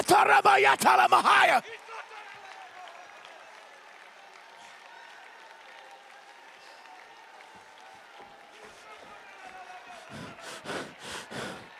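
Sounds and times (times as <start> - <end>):
loud voices shouting: 0.0 - 1.6
faint murmuring crowd: 8.6 - 11.7.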